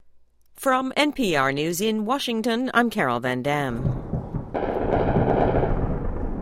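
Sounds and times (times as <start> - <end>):
speech: 0.6 - 4.1
anti-aircraft fire in Tripoli, Libya: 3.8 - 6.4.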